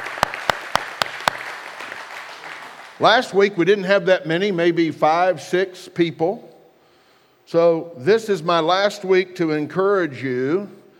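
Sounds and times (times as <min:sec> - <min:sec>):
audience hand clapping: 0:00.0 - 0:03.1
speech: 0:03.0 - 0:06.5, 0:07.5 - 0:10.8.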